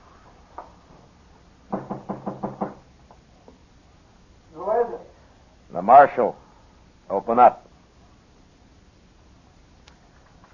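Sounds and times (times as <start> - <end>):
knuckles knocking on a door: 1.7 - 2.8
speech: 5.8 - 6.4, 7.1 - 7.6.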